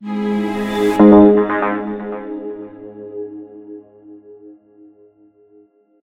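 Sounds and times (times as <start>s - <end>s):
transition sound: 0.0s - 3.1s.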